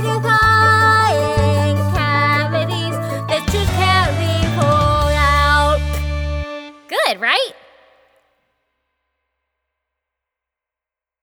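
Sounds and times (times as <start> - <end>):
vocals: 0.0 - 8.0.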